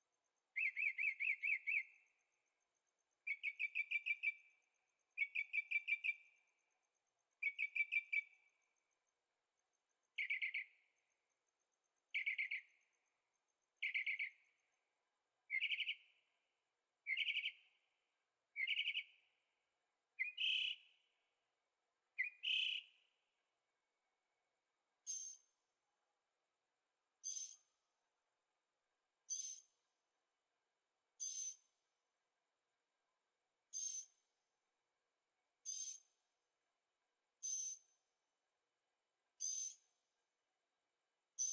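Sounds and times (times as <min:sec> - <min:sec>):
bird chirping song: 0:00.5 - 0:09.0, 0:09.9 - 0:14.8, 0:15.5 - 0:16.4, 0:17.0 - 0:17.9, 0:18.5 - 0:19.5, 0:20.2 - 0:21.1, 0:22.2 - 0:23.2, 0:25.0 - 0:25.6, 0:27.2 - 0:27.8, 0:29.3 - 0:29.8, 0:31.2 - 0:31.8, 0:33.7 - 0:34.3, 0:35.6 - 0:36.2, 0:37.4 - 0:38.0, 0:39.4 - 0:40.0.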